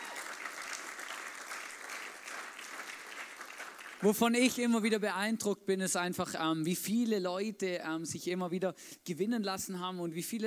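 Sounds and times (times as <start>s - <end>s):
audience applause: 0.0s - 4.1s
speech: 4.0s - 10.4s.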